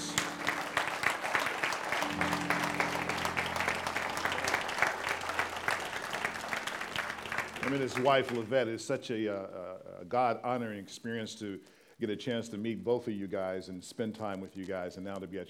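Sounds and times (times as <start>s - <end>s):
audience applauding: 0.0s - 8.6s
speech: 7.7s - 15.4s.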